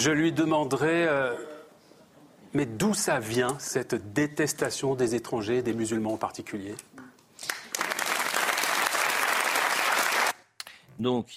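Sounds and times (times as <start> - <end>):
speech: 0.0 - 1.5, 2.5 - 7.6, 11.0 - 11.3
audience applause: 7.4 - 10.4.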